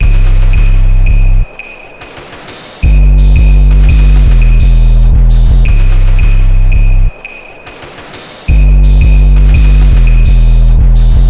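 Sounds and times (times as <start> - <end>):
bass: 0.0 - 1.5, 2.8 - 7.2, 8.5 - 11.2.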